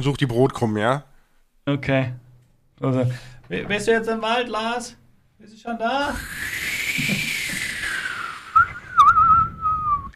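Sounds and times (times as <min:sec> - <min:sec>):
speech: 0:00.0 - 0:02.2, 0:02.8 - 0:07.3
person whistling imitating wind through a forest: 0:06.1 - 0:10.1.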